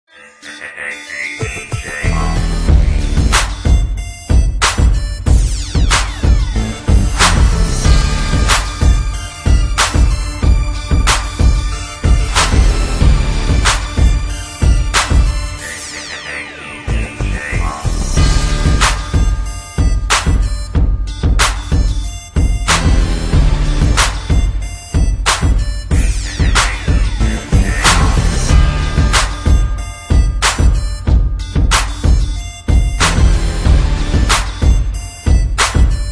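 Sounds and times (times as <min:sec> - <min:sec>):
hip hop rap beat instrumental: 0:00.1 - 0:36.1.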